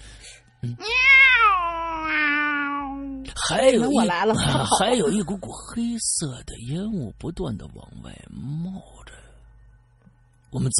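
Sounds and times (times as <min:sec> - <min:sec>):
speech: 0:00.6 - 0:00.9, 0:03.5 - 0:09.1, 0:10.5 - 0:10.7
cat yowling: 0:00.8 - 0:03.2
laughter: 0:03.8 - 0:05.5.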